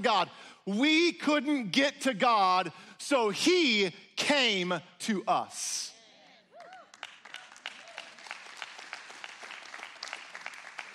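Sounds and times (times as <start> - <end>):
speech: 0.0 - 5.9
crowd clapping: 6.6 - 10.9.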